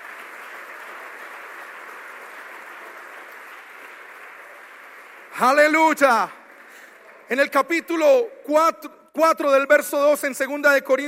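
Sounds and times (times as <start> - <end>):
loud audience applause: 0.0 - 8.2
speech: 5.4 - 6.4, 7.3 - 11.0.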